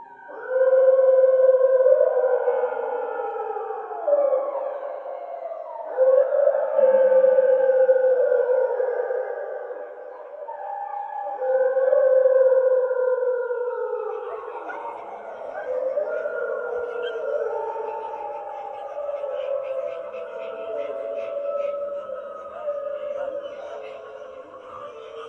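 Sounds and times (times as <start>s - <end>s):
wolf howling: 0.0s - 25.2s.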